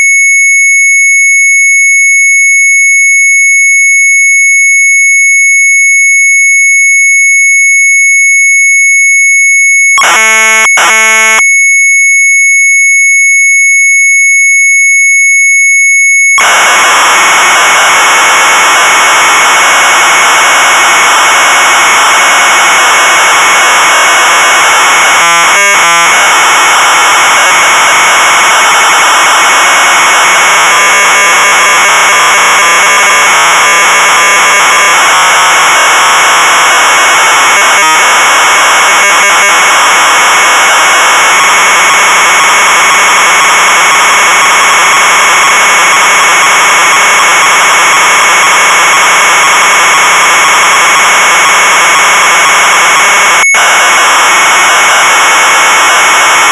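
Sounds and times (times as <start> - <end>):
Sharp MZ800 computer tape data signal: 0.0 - 56.5.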